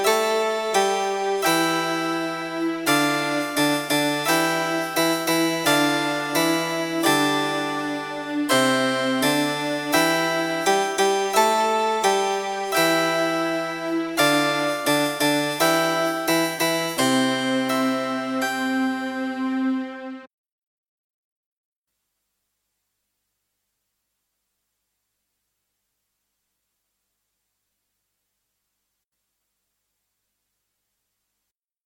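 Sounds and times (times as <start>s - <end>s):
bass: 1.0s - 20.2s.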